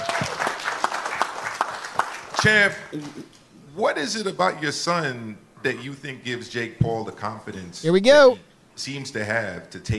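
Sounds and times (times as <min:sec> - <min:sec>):
audience applause: 0:00.0 - 0:02.4
speech: 0:02.4 - 0:09.9.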